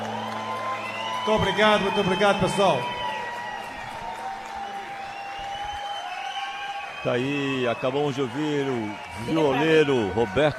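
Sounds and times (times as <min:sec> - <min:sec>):
audience giving a standing ovation: 0:00.0 - 0:10.5
speech: 0:01.2 - 0:03.0, 0:07.0 - 0:10.5.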